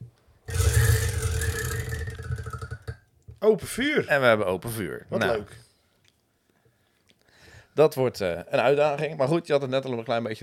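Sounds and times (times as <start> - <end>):
prize wheel spun hard, whirring and clicking: 0.5 - 3.0
speech: 3.4 - 5.7, 7.8 - 10.4.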